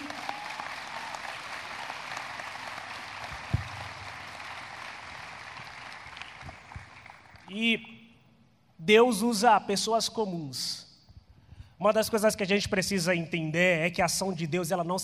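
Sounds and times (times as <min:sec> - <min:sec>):
audience applause: 0:00.0 - 0:07.4
loud thump: 0:03.5 - 0:04.0
speech: 0:07.6 - 0:08.0, 0:08.9 - 0:10.8, 0:11.8 - 0:15.0.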